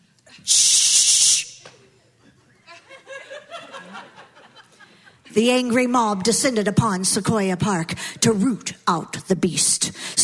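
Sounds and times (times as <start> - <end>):
speech: 0.4 - 0.7, 5.4 - 10.2
bug spray can spraying: 0.5 - 1.6
laughter: 1.7 - 5.3.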